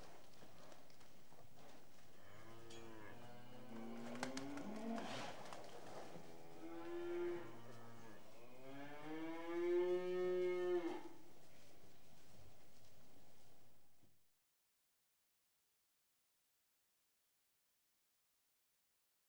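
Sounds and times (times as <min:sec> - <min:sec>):
restless cattle lowing in a shed: 0:02.2 - 0:05.3, 0:06.1 - 0:11.2.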